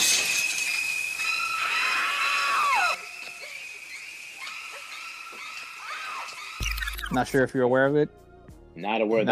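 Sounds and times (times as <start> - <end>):
shrill screeching string stabs: 0.0 - 7.4
speech: 7.1 - 8.2, 8.8 - 9.3.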